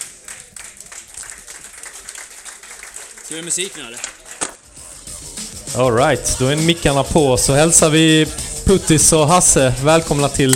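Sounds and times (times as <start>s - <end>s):
audience clapping for guests coming on stage: 0.0s - 4.7s
speech: 3.3s - 4.2s, 5.8s - 10.5s.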